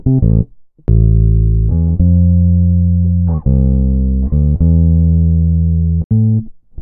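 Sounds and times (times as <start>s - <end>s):
hip hop bass loop: 0.2s - 6.4s.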